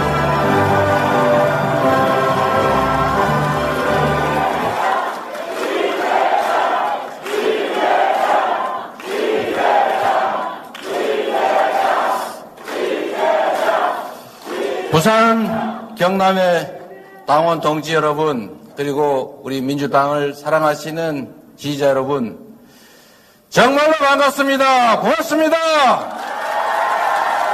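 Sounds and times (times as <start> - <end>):
booming music: 0.0 - 4.8
large crowd roaring: 0.0 - 15.8, 26.2 - 27.5
speech: 15.0 - 22.4, 23.5 - 26.1.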